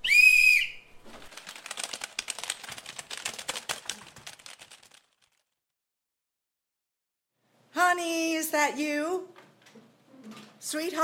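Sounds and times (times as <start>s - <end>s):
whistle blown: 0.0s - 0.9s
computer keyboard typing: 1.3s - 5.4s
speech: 8.0s - 9.4s, 10.6s - 11.0s.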